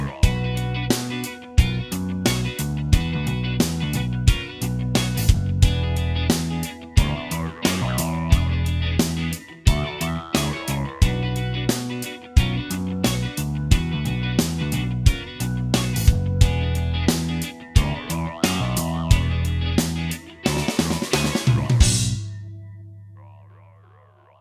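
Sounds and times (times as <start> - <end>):
disco funk music: 0.0 - 24.4.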